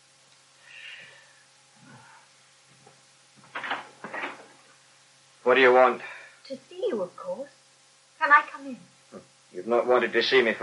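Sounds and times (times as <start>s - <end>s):
door opening with faint creaky squeak: 3.5s - 4.5s
speech: 5.5s - 7.6s, 8.2s - 10.6s.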